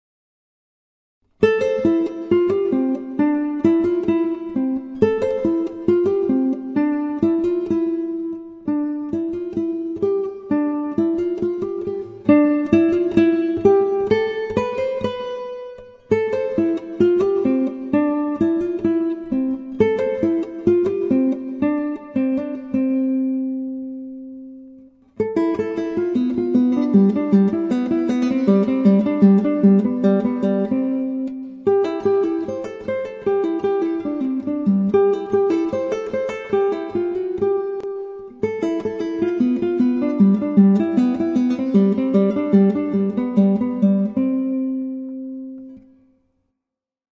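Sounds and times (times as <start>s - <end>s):
guitar playing legato: 1.4s - 46.0s.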